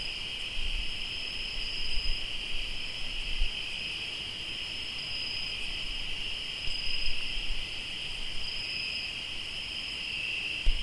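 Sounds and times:
cricket chorus trilling in Tlayacapan Morelos: 0:00.0 - 0:10.8.

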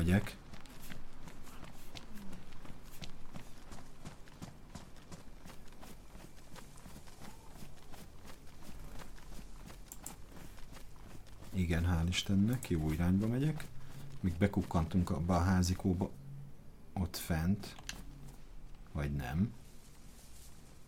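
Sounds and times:
speech: 0:00.0 - 0:00.4, 0:11.6 - 0:16.2, 0:17.0 - 0:17.8, 0:19.0 - 0:19.6
video game character footsteps: 0:00.0 - 0:16.0.

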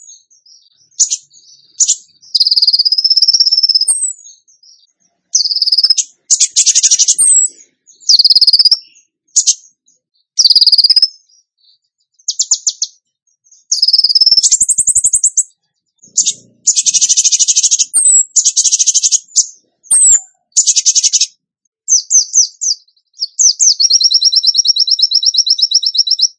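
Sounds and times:
bird singing: 0:00.0 - 0:26.3.

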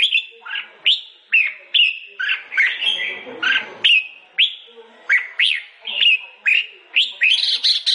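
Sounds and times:
sooty-headed bulbul song of whistled and chattering notes: 0:00.0 - 0:07.9.

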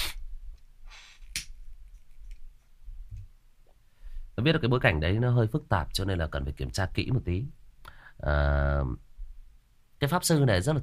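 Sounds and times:
person with the flu sniffling from a stuffy nose: 0:00.0 - 0:00.2, 0:00.9 - 0:01.3
speech: 0:04.4 - 0:07.6, 0:08.2 - 0:09.1, 0:10.0 - 0:10.8.

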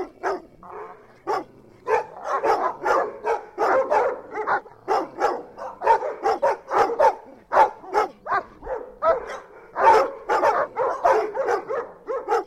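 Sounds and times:
dogs barking: 0:00.0 - 0:12.4.

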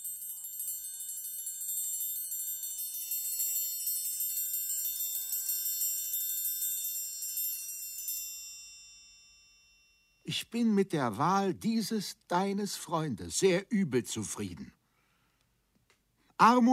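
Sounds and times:
small bell ringing: 0:00.0 - 0:10.3
speech: 0:10.3 - 0:14.8, 0:16.4 - 0:16.7.

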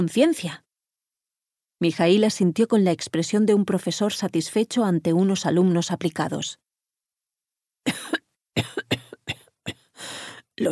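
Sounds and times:
speech: 0:00.0 - 0:00.6, 0:01.8 - 0:06.6, 0:08.6 - 0:09.0
harsh raspy coughing: 0:07.8 - 0:10.0.

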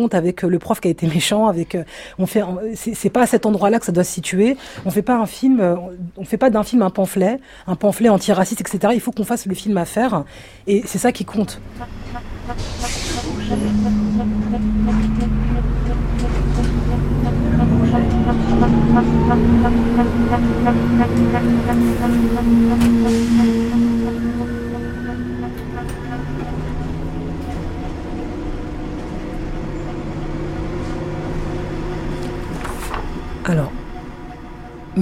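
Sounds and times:
speech: 0:00.0 - 0:15.5, 0:18.4 - 0:23.8, 0:33.5 - 0:33.8
city bus engine drone: 0:11.6 - 0:34.9
indistinct murmuring: 0:11.8 - 0:28.1.

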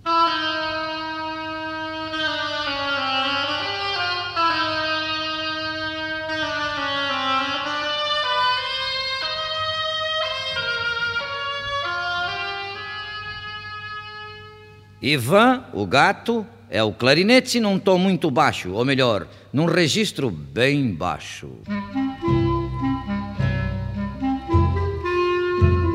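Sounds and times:
oboe playing a theme: 0:00.0 - 0:15.6, 0:21.6 - 0:25.9
speech: 0:15.0 - 0:21.8.

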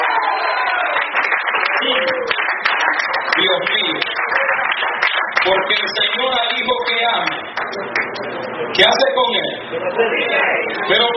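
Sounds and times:
audience shouting hallelujah and cheering: 0:00.0 - 0:03.6
scattered claps: 0:00.8 - 0:08.2
speech: 0:08.8 - 0:11.1.

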